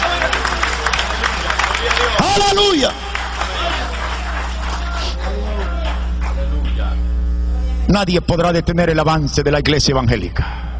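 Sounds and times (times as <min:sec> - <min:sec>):
crowd audience applauding: 0:00.0 - 0:06.9
speech: 0:02.4 - 0:03.1, 0:07.9 - 0:10.6.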